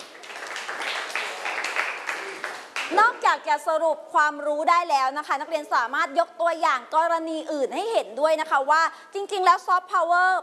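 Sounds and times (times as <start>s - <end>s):
students applauding a classmate in a classroom: 0.0s - 3.0s
speech: 2.9s - 10.4s.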